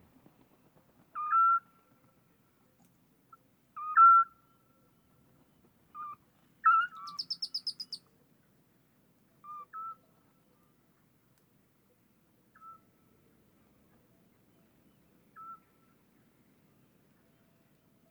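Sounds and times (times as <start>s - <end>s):
male and female Eurasian Scops Owl calls during copulation: 1.2s - 1.6s, 3.8s - 4.4s, 5.9s - 8.0s, 9.4s - 10.0s, 15.3s - 15.7s.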